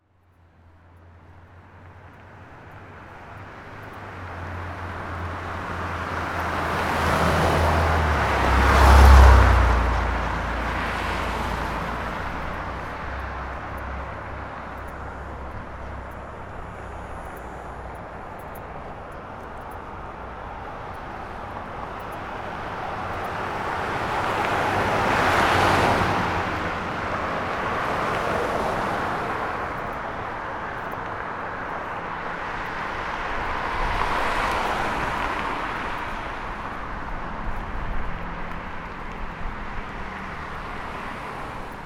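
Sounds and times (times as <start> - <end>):
traffic: 0.0 - 41.8.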